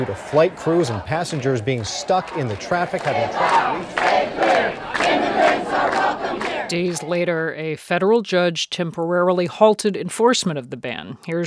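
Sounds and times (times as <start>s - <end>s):
speech: 0.0s - 5.6s, 6.7s - 11.4s
crowd of demonstrators shouting at Philadelphia International Airport: 0.0s - 6.7s.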